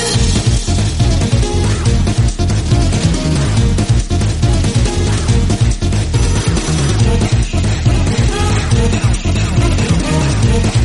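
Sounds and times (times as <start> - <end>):
marimba remix instrumental song: 0.2 - 10.8.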